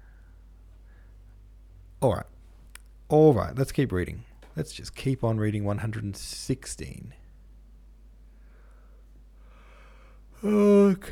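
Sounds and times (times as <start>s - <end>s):
speech: 2.0s - 2.3s, 3.1s - 7.2s, 10.4s - 11.0s
person yawning: 10.4s - 11.0s.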